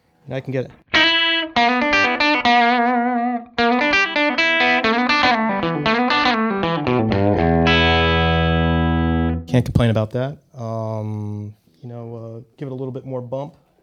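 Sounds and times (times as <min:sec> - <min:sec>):
speech: 0:00.3 - 0:00.9, 0:02.5 - 0:02.7, 0:09.5 - 0:13.6
semi-hollow body guitar through crunchy tube amp: 0:00.9 - 0:09.5.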